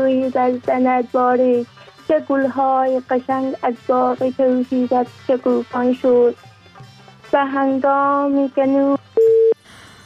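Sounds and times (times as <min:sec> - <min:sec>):
speech: 0:00.1 - 0:06.5, 0:07.3 - 0:09.0
telephone busy signal tones: 0:09.2 - 0:09.6.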